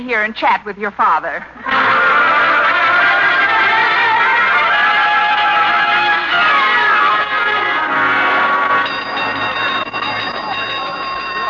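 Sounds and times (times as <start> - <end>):
speech: 0.0 - 2.2
fire drill gong ringing: 1.7 - 11.4.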